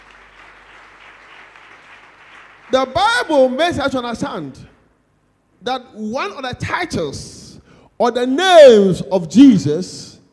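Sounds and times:
church audience clapping hands: 0.0 - 3.6
speech: 2.7 - 4.7, 5.6 - 7.4, 8.0 - 10.2.

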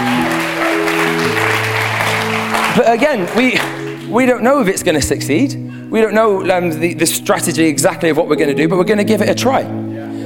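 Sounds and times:
audience clapping: 0.0 - 4.4
speech: 2.8 - 9.8.

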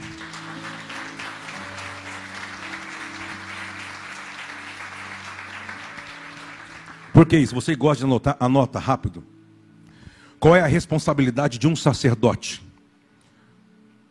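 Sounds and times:
audience applause: 0.0 - 7.6
speech: 7.2 - 9.3, 10.4 - 12.7.

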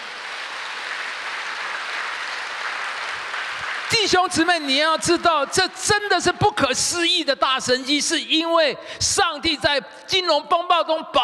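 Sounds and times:
audience applause: 0.0 - 5.1
speech: 4.0 - 11.2.

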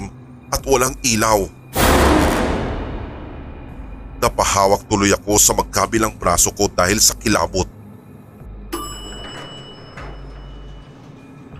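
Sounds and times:
speech: 0.5 - 2.2, 4.2 - 7.8
steady low hum: 1.6 - 8.7
elevator bell chiming as the doors open: 8.7 - 11.3.

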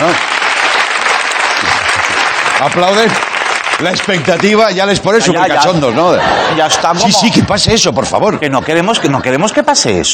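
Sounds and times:
audience applause: 0.0 - 7.4
speech: 2.6 - 10.1
laughter: 5.0 - 10.1.

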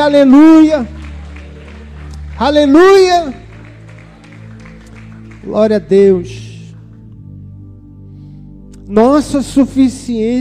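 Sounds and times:
speech: 0.0 - 1.0, 2.4 - 3.4, 5.4 - 6.4, 8.9 - 10.3
audience applause: 0.5 - 6.8.

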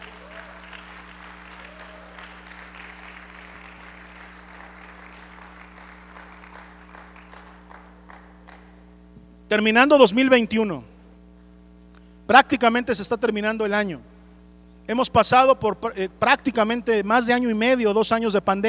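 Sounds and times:
audience applause: 0.0 - 8.8
speech: 9.5 - 10.9, 12.3 - 14.1, 14.9 - 18.6.

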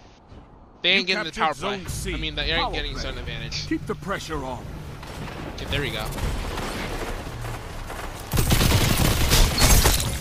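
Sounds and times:
speech: 0.8 - 4.8, 5.6 - 6.5
gunfire in a Crucible match in Destiny 2: 5.0 - 10.2.

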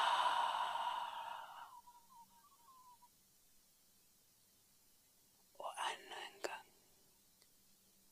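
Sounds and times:
person breathing out: 0.0 - 1.8.

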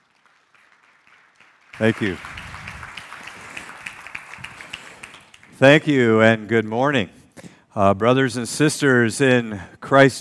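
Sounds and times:
light audience applause at a Christian gathering welcoming a guest speaker: 0.0 - 6.0
speech: 1.8 - 2.3, 5.6 - 7.2, 7.8 - 10.1.

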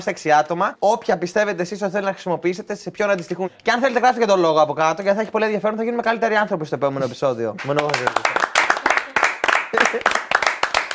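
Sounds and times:
speech: 0.0 - 8.4
hand clapping: 7.6 - 10.9.

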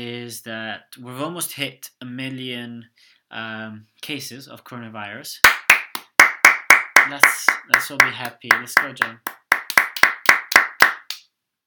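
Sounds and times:
speech: 0.0 - 5.6, 7.1 - 9.4
hand clapping: 5.4 - 11.2.

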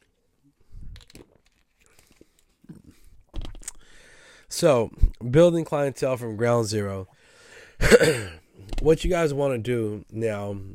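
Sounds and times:
person drinking water: 0.8 - 4.0
speech: 4.5 - 7.2, 7.8 - 10.7.

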